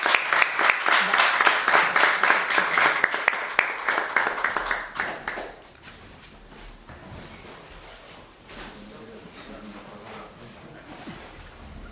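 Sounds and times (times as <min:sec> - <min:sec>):
audience applause: 0:00.0 - 0:05.8.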